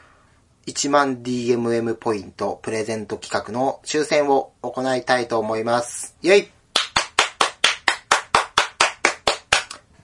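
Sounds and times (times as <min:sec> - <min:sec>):
speech: 0:00.7 - 0:06.6
one person clapping hands: 0:06.7 - 0:09.9.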